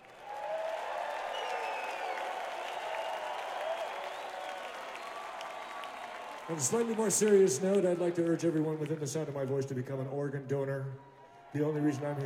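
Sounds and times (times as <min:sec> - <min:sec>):
crowd applause: 0:00.0 - 0:09.5, 0:11.0 - 0:12.2
whistles: 0:00.2 - 0:07.0
speech: 0:06.5 - 0:12.2.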